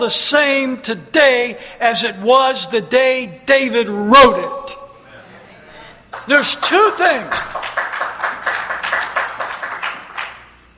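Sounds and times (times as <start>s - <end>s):
speech: 0.0s - 4.8s, 6.3s - 7.8s
few people clapping: 6.1s - 10.6s.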